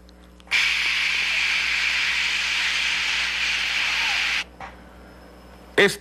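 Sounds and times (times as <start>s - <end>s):
voice imitating TV static hiss: 0.5s - 4.5s.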